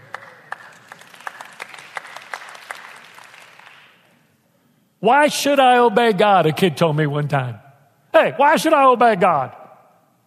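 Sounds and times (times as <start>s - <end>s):
audience clapping: 0.0s - 4.2s
speech: 5.0s - 7.6s, 8.2s - 9.6s.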